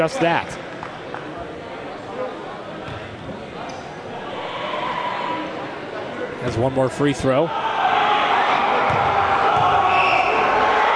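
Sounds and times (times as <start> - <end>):
speech: 0.0 - 0.6, 6.4 - 7.6
student section crowd roaring during free throws at a college basketball game: 4.1 - 5.8, 6.7 - 10.9.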